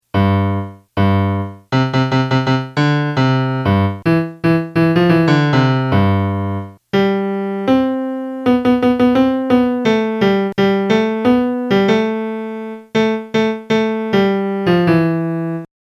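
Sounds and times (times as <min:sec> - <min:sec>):
melody: 0:00.2 - 0:15.7.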